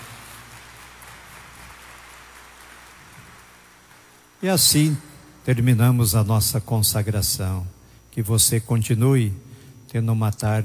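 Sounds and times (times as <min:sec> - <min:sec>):
applause: 0:00.0 - 0:04.8
speech: 0:04.4 - 0:10.6.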